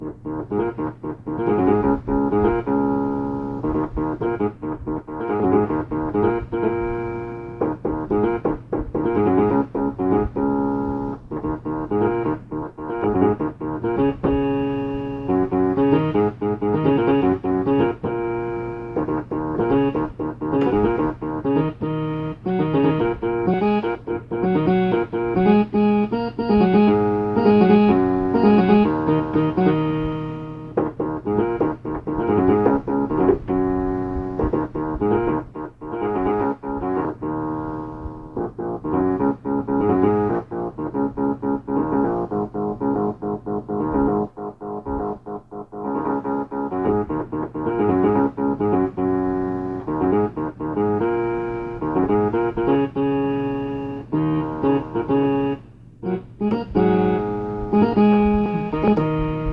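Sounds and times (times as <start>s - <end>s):
piano: 0.0s - 59.5s.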